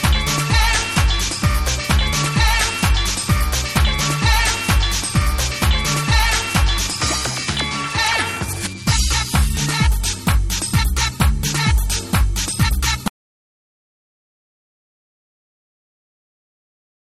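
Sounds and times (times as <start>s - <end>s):
disco mix: 0.0s - 13.1s.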